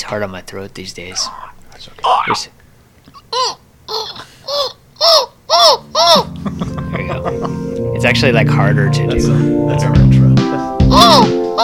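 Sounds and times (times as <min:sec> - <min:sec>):
speech: 0:00.0 - 0:03.6, 0:07.2 - 0:11.6
person imitating seagull squawks: 0:03.1 - 0:06.4, 0:10.8 - 0:11.6
laughter: 0:06.0 - 0:07.7.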